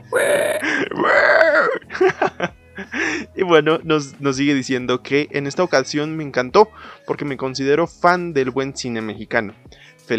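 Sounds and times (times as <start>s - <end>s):
voice imitating pig screams: 0.0s - 1.9s
laughter: 1.9s - 2.9s
speech: 3.4s - 10.1s.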